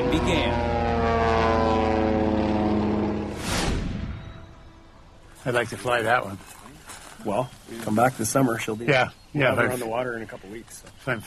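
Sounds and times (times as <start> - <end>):
rushing surge of noise: 0.0 - 5.2
float plane propeller engine droning: 0.0 - 5.4
speech: 0.2 - 0.7, 5.5 - 6.6, 7.2 - 11.2.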